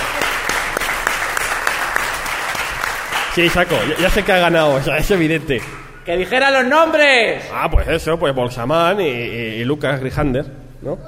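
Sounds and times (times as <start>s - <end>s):
audience applause: 0.0s - 6.0s
speech: 3.4s - 11.0s.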